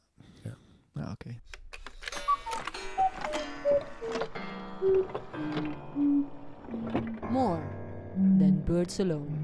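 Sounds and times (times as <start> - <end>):
speech: 1.1 - 1.6, 8.7 - 9.4
slowed-down cuckoo clock: 2.2 - 7.0.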